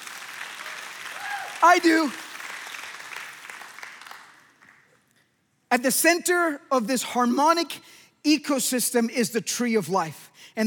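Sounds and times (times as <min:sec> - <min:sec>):
audience clapping: 0:00.0 - 0:05.1
speech: 0:01.6 - 0:02.2, 0:05.7 - 0:10.6.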